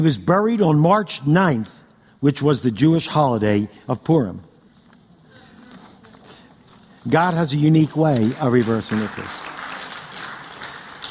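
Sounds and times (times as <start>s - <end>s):
speech: 0.0s - 4.5s, 7.0s - 9.4s
audience applause: 7.8s - 11.0s.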